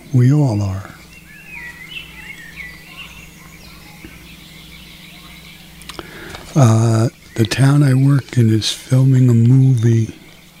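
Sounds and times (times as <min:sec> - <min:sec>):
birds chirping and whistling: 0:00.0 - 0:10.5
frogs croaking: 0:00.0 - 0:10.5
speech: 0:00.1 - 0:01.0, 0:06.6 - 0:10.2
sharp clicks: 0:05.8 - 0:06.6.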